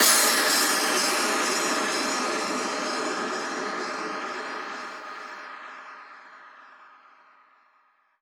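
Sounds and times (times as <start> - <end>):
impact sound effect: 0.0 - 6.8.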